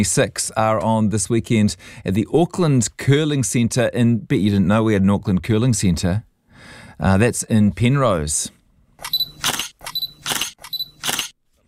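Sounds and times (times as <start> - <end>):
speech: 0.0 - 9.2
camera shutter clicks: 9.0 - 11.4.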